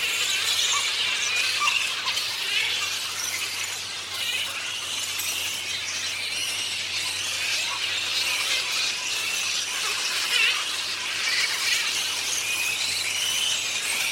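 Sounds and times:
grey-headed flying fox colony: 0.0 - 14.0.

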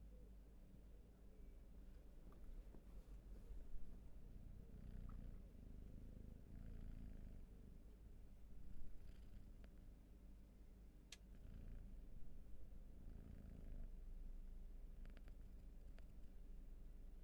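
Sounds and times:
cat purring: 0.1 - 17.2
soft clicks and rustling: 2.2 - 3.7.

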